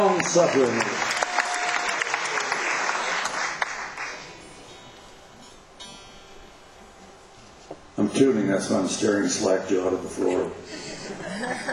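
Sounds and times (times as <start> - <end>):
speech: 0.0 - 1.1, 8.1 - 11.7
concert audience applause for the sound mixer: 0.0 - 4.4
laughter: 10.6 - 11.7.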